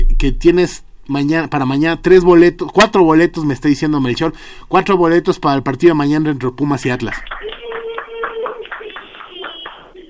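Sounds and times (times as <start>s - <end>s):
speech: 0.2s - 7.5s
applause: 7.1s - 10.0s.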